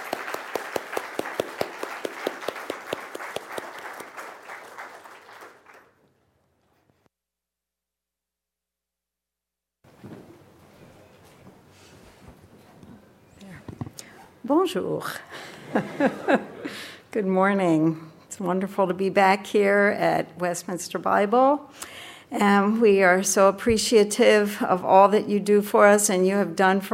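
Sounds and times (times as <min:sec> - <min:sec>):
audience applauding in church: 0:00.0 - 0:06.1
speech: 0:14.6 - 0:16.5, 0:17.2 - 0:26.9
laughter: 0:15.4 - 0:17.0.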